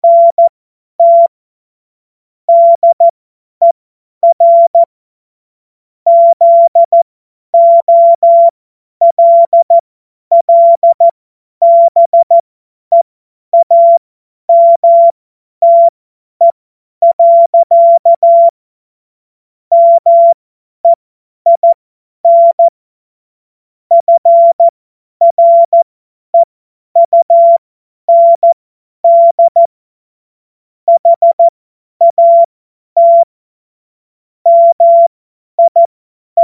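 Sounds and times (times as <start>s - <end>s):
CW Morse code beeps: 0.0s - 1.3s, 2.5s - 4.9s, 6.1s - 7.0s, 7.6s - 13.0s, 13.6s - 18.6s, 19.7s - 22.7s, 23.9s - 25.8s, 26.4s - 29.7s, 30.9s - 33.3s, 34.5s - 36.4s.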